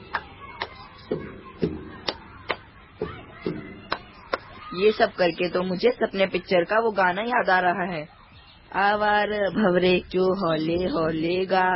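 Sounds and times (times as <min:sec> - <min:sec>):
sharp hand claps: 0:00.0 - 0:01.1, 0:02.0 - 0:02.7, 0:03.9 - 0:04.6
speech: 0:04.8 - 0:11.7.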